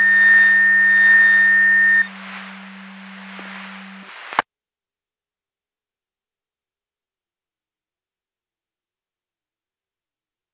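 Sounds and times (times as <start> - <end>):
siren: 0.0 - 4.4.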